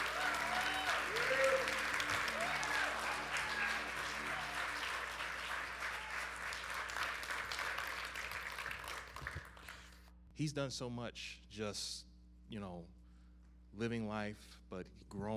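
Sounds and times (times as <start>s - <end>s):
audience applause: 0.0s - 10.0s
speech: 10.4s - 13.0s, 13.7s - 15.3s.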